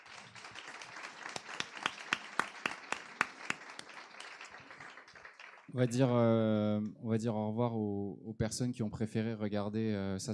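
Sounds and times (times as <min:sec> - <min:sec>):
audience applause: 0:00.0 - 0:06.1
speech: 0:05.7 - 0:10.3.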